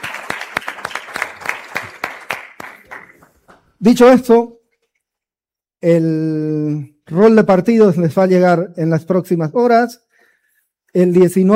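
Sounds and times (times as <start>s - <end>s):
audience applause: 0.0s - 3.7s
speech: 3.8s - 4.6s, 5.8s - 10.0s, 10.9s - 11.5s.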